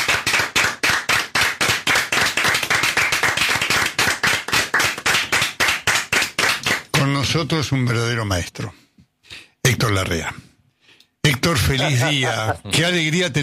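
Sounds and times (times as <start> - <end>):
standing audience applause: 0.0 - 6.7
speech: 7.3 - 8.8, 9.8 - 10.4, 11.3 - 13.4
laughter: 11.5 - 12.8.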